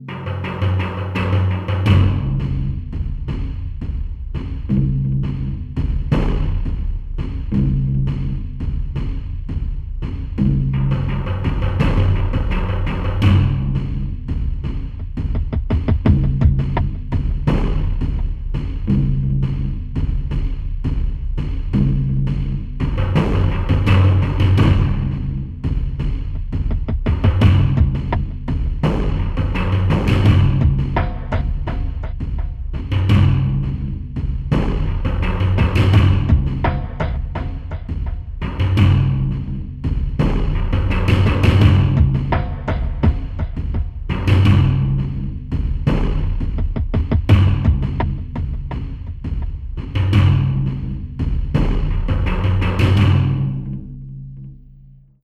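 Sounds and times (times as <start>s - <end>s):
attack music loop: 0.0s - 54.5s.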